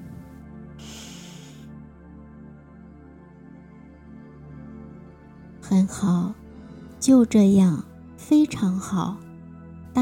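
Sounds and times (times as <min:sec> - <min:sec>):
deep breath in during a guided hypnosis exercise on grief: 0:00.8 - 0:01.7
speech: 0:05.7 - 0:06.4, 0:07.0 - 0:09.2.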